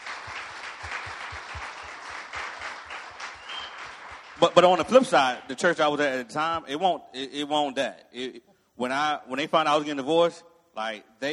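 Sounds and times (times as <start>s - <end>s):
audience applause: 0.0s - 4.8s
speech: 4.4s - 11.3s.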